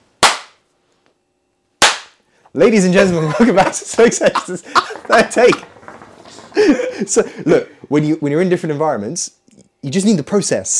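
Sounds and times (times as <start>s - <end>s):
hand claps marking a recording take: 0.2s - 0.6s, 1.8s - 2.2s
speech: 2.5s - 5.7s, 6.7s - 10.7s
laughter: 2.9s - 7.9s.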